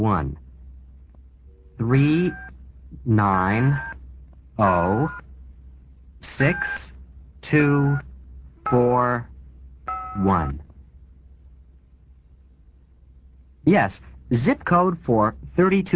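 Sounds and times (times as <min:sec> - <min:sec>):
speech: 0:00.0 - 0:00.4, 0:01.8 - 0:03.9, 0:04.6 - 0:05.2, 0:06.2 - 0:08.1, 0:08.7 - 0:09.3, 0:10.2 - 0:10.6, 0:13.6 - 0:15.9
faint hum: 0:00.0 - 0:15.9
telephone number dialing tones: 0:09.9 - 0:10.2.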